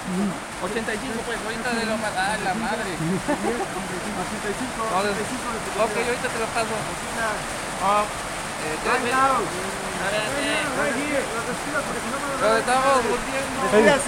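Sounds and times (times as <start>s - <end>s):
heavy rain: 0.0s - 14.0s
speech: 0.1s - 14.0s
laughter: 1.5s - 6.3s.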